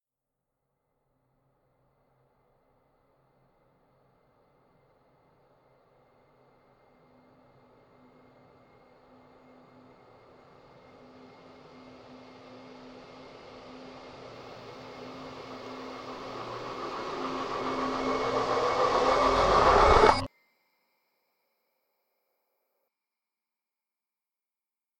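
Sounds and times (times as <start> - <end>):
horror music build-up: 12.8 - 20.3.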